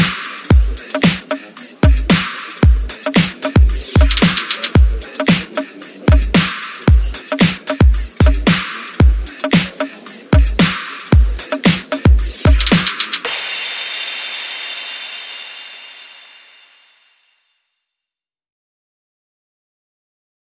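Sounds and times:
music beat: 0.0s - 15.8s.

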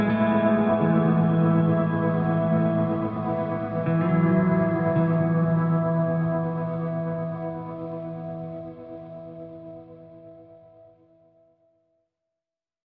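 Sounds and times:
guitars: 0.0s - 10.6s.

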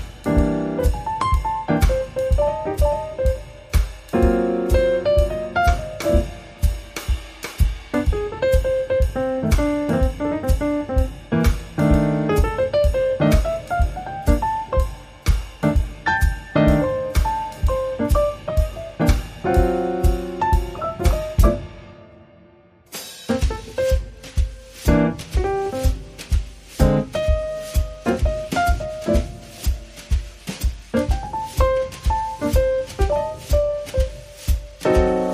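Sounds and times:
jazzy brushes on drums: 0.0s - 21.9s, 22.9s - 35.3s.

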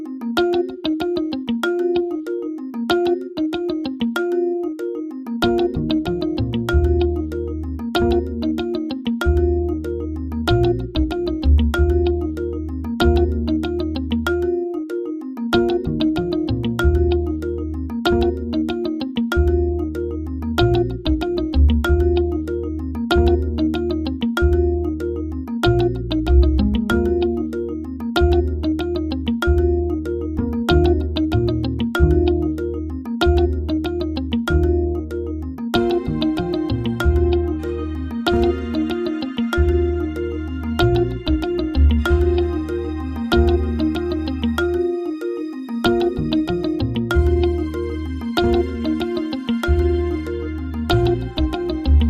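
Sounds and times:
guitar: 0.4s - 52.0s.

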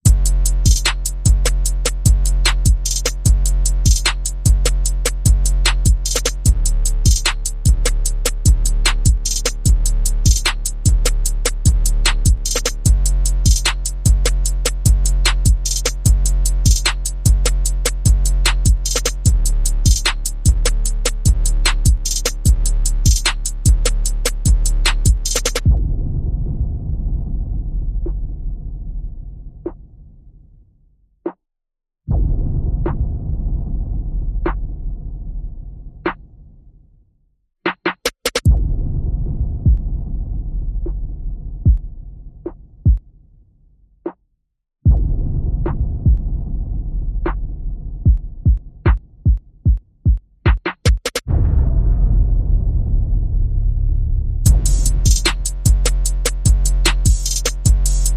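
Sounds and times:
percussion: 0.0s - 25.9s, 37.7s - 44.2s, 44.9s - 58.1s
bass: 0.0s - 30.3s, 32.1s - 36.6s, 38.4s - 43.0s, 44.8s - 49.2s, 51.3s - 58.1s.

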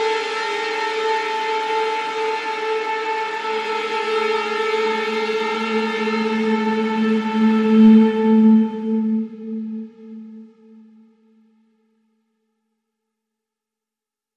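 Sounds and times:
uneasy string pad: 0.0s - 11.1s.

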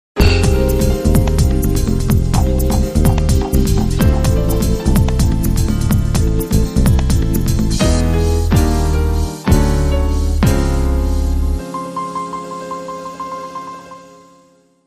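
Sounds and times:
future bossa music: 0.2s - 14.6s.

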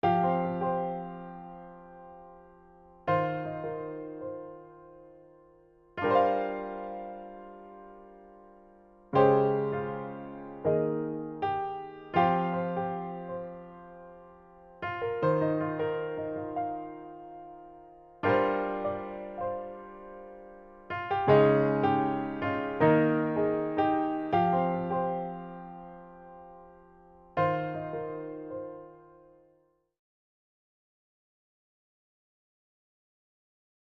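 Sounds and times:
introspective piano etude: 0.0s - 29.6s.

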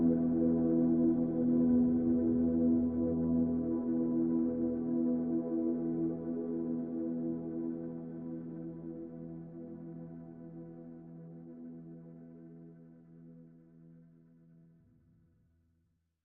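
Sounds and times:
synth pads in E: 0.0s - 10.9s.

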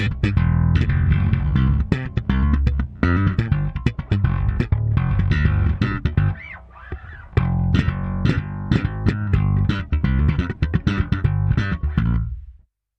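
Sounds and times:
solo bass groove: 0.0s - 12.7s.

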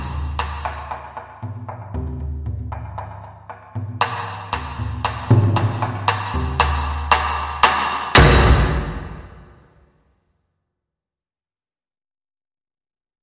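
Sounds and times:
drums: 0.0s - 9.6s.

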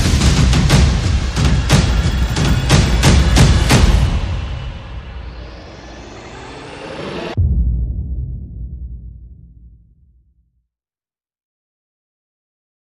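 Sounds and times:
percussion: 0.0s - 9.8s
sound effects: 0.0s - 10.0s.

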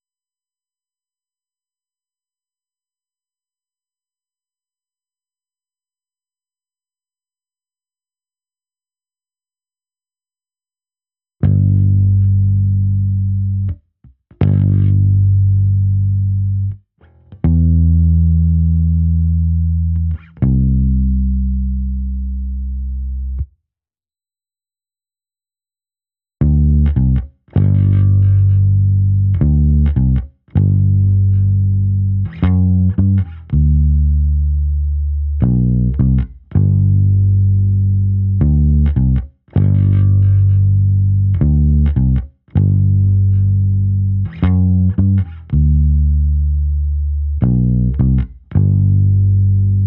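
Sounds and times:
bass: 11.4s - 23.5s, 26.4s - 49.8s.

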